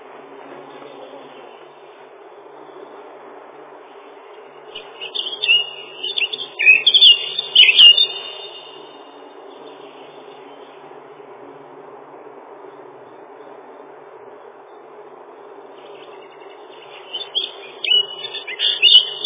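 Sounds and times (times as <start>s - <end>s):
lesser whitethroat chattering warble: 4.8s - 9.1s, 15.9s - 19.2s.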